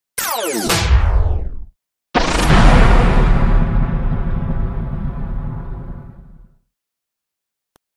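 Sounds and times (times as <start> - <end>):
spaceshot sonic explosion: 0.7 - 6.6.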